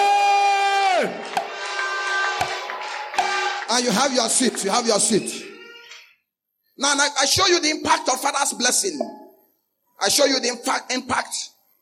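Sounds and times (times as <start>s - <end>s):
audience shouts of praise: 0.0s - 3.8s
audience clapping: 0.9s - 5.2s
speech: 3.8s - 5.5s, 6.8s - 9.2s, 10.0s - 11.5s.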